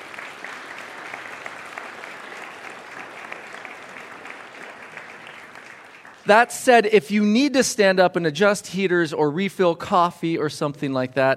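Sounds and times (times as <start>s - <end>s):
audience round of applause: 0.0s - 6.9s
speech: 6.3s - 11.3s.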